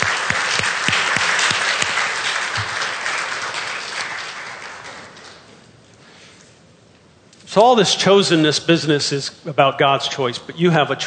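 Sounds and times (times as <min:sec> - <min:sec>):
crowd applause: 0:00.0 - 0:05.5
speech: 0:07.6 - 0:11.0.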